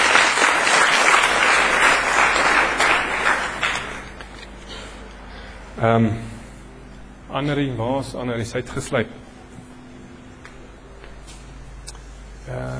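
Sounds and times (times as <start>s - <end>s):
audience applause: 0.0s - 4.3s
speech: 5.8s - 6.3s, 7.3s - 9.3s.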